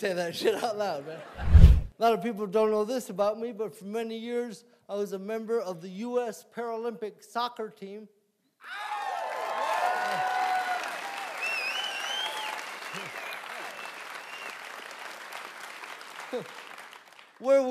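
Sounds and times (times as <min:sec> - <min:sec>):
speech: 0:00.0 - 0:08.9, 0:16.3 - 0:16.6, 0:17.4 - 0:17.6
whoops: 0:08.6 - 0:13.4
small audience applause: 0:08.8 - 0:17.4.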